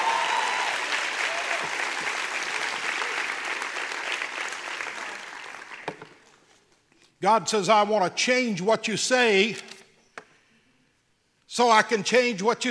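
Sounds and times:
audience clapping hands: 0.0s - 6.2s
speech: 7.2s - 9.7s, 11.6s - 12.6s.

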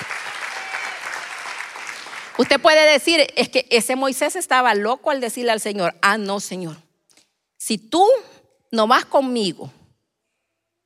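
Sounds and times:
audience applauding: 0.0s - 2.5s
speech: 2.4s - 6.8s, 7.6s - 9.8s.

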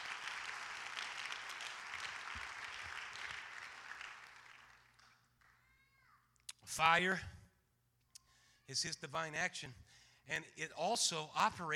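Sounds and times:
audience clapping hands: 0.0s - 5.8s
speech: 6.7s - 7.4s, 8.7s - 11.7s.

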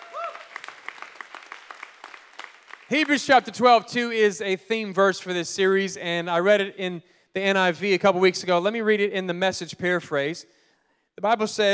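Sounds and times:
audience clapping hands: 0.0s - 3.6s
speech: 2.9s - 10.6s, 11.2s - 11.7s.

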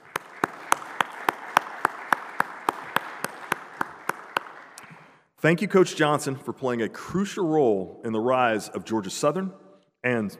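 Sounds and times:
audience round of applause: 0.0s - 5.1s
speech: 5.4s - 10.3s.

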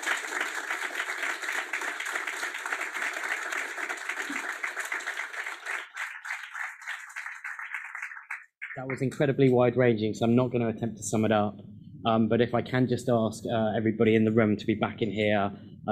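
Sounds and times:
audience round of applause: 0.0s - 9.3s
speech: 8.8s - 15.9s.

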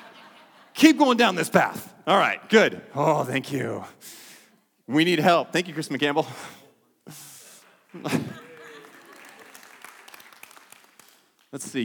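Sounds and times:
laughter: 0.0s - 0.8s, 7.8s - 9.8s
speech: 0.8s - 4.2s, 4.9s - 7.2s, 7.9s - 8.4s, 11.5s - 11.8s
audience applause: 7.9s - 11.6s.

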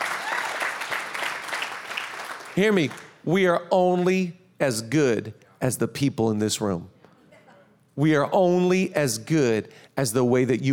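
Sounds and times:
church audience clapping: 0.0s - 3.2s
speech: 2.6s - 7.0s, 8.0s - 10.7s.

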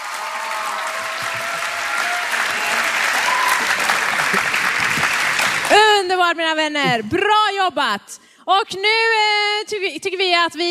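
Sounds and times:
audience applause: 0.0s - 5.8s
speech: 6.2s - 10.6s.

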